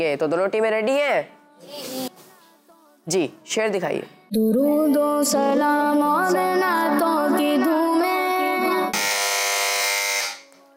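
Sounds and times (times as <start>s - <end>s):
speech: 0.0s - 2.1s, 3.1s - 8.1s
quiz buzzer: 8.9s - 10.5s.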